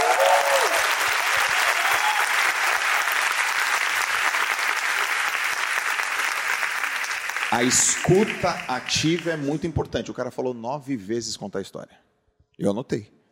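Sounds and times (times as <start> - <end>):
audience applause: 0.0 - 9.7
speech: 7.5 - 12.0, 12.6 - 13.2.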